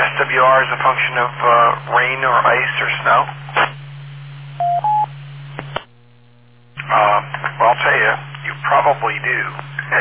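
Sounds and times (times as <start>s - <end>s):
speech: 0.0s - 3.7s, 8.8s - 9.7s
low hum: 0.0s - 9.9s
telephone ringing with electronic beeps: 4.6s - 5.1s.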